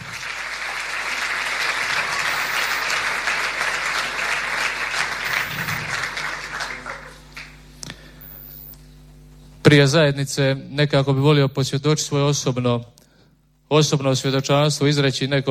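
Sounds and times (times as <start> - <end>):
audience applause at a Christian community gathering: 0.0 - 7.7
speech: 9.7 - 13.0, 13.7 - 15.4.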